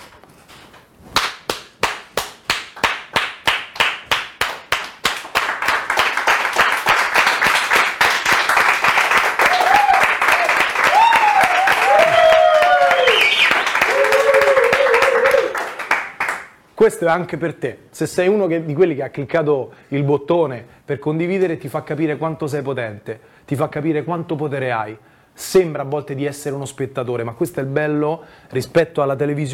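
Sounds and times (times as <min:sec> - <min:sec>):
audience applause: 0:02.5 - 0:16.5
speech: 0:16.8 - 0:29.5.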